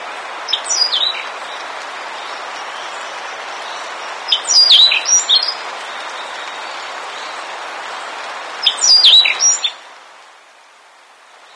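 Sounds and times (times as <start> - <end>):
bird giving high, sharply rising and falling chirps: 0.5 - 7.4, 8.6 - 9.8.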